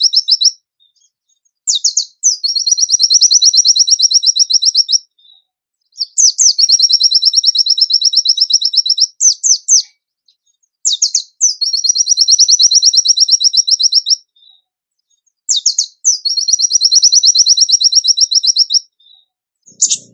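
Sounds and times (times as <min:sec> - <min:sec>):
bird trilling: 0:00.0 - 0:00.6, 0:01.7 - 0:05.0, 0:06.0 - 0:09.9, 0:10.8 - 0:14.2, 0:15.5 - 0:20.1.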